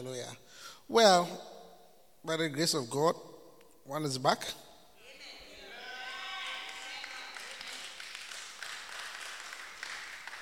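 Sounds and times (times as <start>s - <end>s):
speech: 0.0s - 1.5s, 2.2s - 3.3s, 3.9s - 4.6s
audience clapping: 6.2s - 10.3s.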